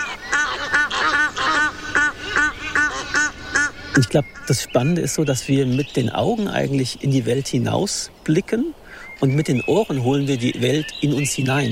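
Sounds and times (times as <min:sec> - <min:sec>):
Egyptian geese calling during mating, harsh rhythmic honking and quacking: 0:00.0 - 0:04.7
speech: 0:04.0 - 0:11.6.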